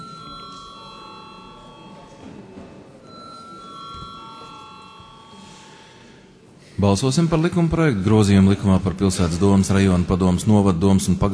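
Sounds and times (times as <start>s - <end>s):
parliament chairman's bell ringing: 0.0s - 6.3s
speech: 6.8s - 11.3s.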